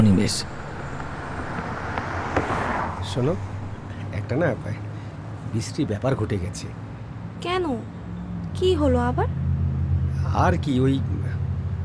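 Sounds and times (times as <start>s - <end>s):
car speeding along in the evening: 0.0s - 4.9s
speech: 0.2s - 0.6s, 3.1s - 3.5s, 4.1s - 4.9s, 5.5s - 6.8s, 7.4s - 8.0s, 8.6s - 9.4s, 10.3s - 11.4s.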